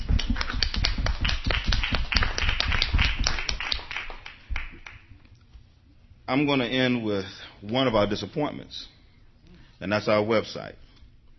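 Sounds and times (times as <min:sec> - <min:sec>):
applause: 0:00.0 - 0:05.1
speech: 0:06.3 - 0:08.9, 0:09.8 - 0:10.8.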